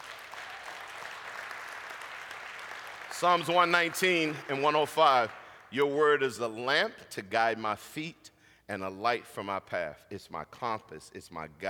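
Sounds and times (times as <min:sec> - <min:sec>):
audience applauding: 0:00.0 - 0:05.6
speech: 0:03.2 - 0:11.6.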